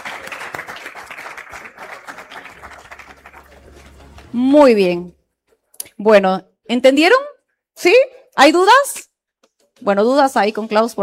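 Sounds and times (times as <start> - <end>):
audience applause: 0.0 - 4.4
speech: 4.3 - 5.2, 6.0 - 9.0, 9.8 - 11.0.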